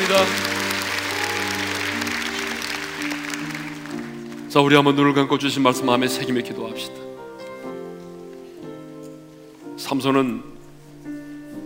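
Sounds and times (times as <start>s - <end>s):
audience applause: 0.0s - 5.0s
speech: 0.1s - 0.5s, 4.5s - 7.1s, 9.9s - 10.6s.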